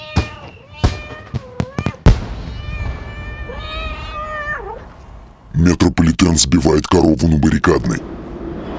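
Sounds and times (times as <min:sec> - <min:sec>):
kittens meowing: 0:00.0 - 0:04.9
speech: 0:05.6 - 0:08.2.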